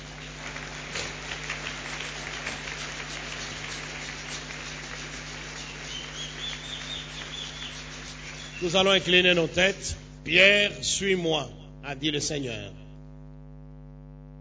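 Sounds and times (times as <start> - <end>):
church congregation applauding and acclaiming during a worship service: 0.0 - 10.0
low hum: 0.0 - 14.1
speech: 8.6 - 12.8.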